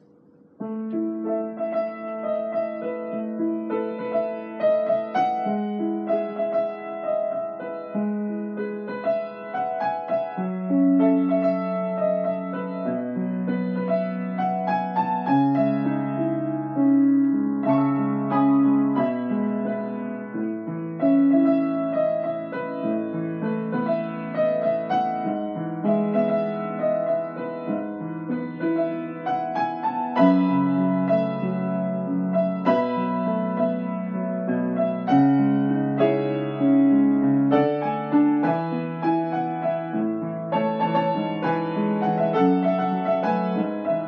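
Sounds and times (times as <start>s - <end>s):
piano music: 0.0s - 44.0s.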